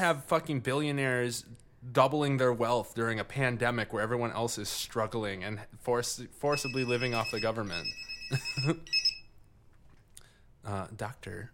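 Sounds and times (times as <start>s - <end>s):
speech: 0.0s - 9.0s, 10.6s - 11.5s
pager beeping: 6.5s - 9.3s.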